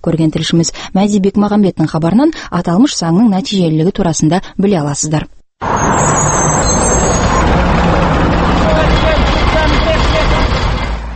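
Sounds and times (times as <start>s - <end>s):
speech: 0.0s - 6.3s
route 79 city bus engine rumble in central Almaty: 5.6s - 11.1s.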